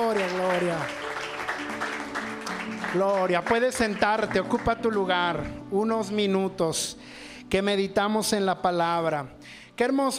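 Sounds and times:
speech: 0.0 - 1.1, 2.9 - 10.1
audience applause: 0.0 - 4.8.

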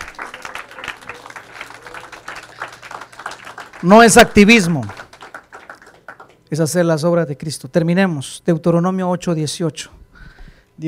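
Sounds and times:
audience applause: 0.0 - 6.4
speech: 3.8 - 5.0, 6.5 - 10.0.

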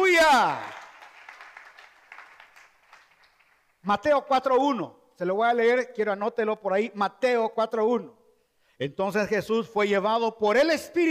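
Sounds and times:
audience clapping: 0.0 - 3.8
speech: 0.2 - 0.7, 3.8 - 8.2, 8.8 - 11.0.

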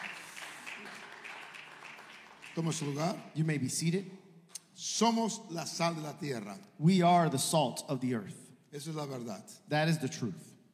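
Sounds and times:
audience applauding: 0.0 - 3.2
speech: 2.6 - 4.2, 4.8 - 10.5.

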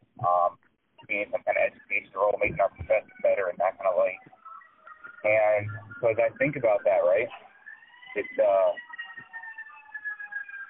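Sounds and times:
speech: 1.1 - 4.3, 5.2 - 7.4, 8.2 - 8.8
fire truck siren: 2.3 - 10.6.

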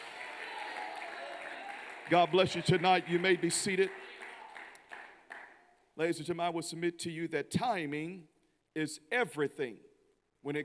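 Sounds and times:
audience clapping hands: 0.0 - 5.8
speech: 2.1 - 4.1, 6.0 - 10.6.

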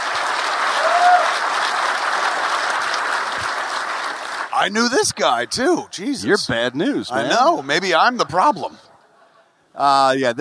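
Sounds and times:
audience applause: 0.0 - 5.5
speech: 4.6 - 8.8, 9.8 - 10.3.

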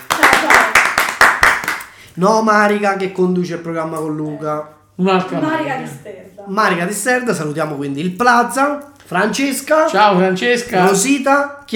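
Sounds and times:
rhythmic applause: 0.0 - 2.1
speech: 2.2 - 11.7.

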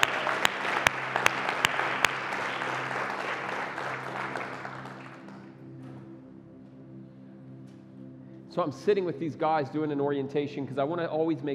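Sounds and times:
audience applause: 0.0 - 5.4
speech: 8.6 - 11.5.

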